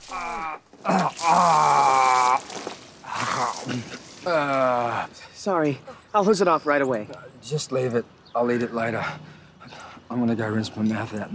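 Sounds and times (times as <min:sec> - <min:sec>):
dog character retching and projectile vomiting into a bush: 0:00.0 - 0:05.1
speech: 0:05.5 - 0:11.3.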